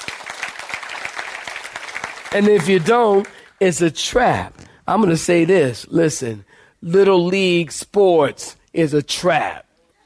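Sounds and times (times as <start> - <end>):
crowd clapping: 0.0 - 3.6
speech: 2.3 - 10.0.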